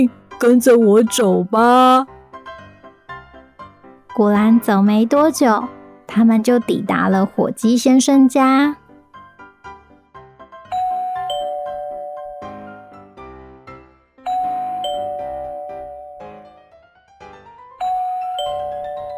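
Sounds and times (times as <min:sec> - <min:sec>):
speech: 0:00.0 - 0:02.1, 0:04.2 - 0:08.8
chiming two-note doorbell ringing: 0:10.7 - 0:12.4, 0:14.3 - 0:16.2, 0:17.8 - 0:19.1.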